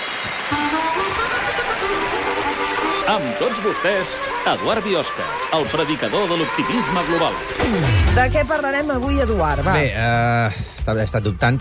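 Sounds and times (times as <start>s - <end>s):
crowd applause: 0.0s - 8.2s
speech: 3.1s - 11.5s.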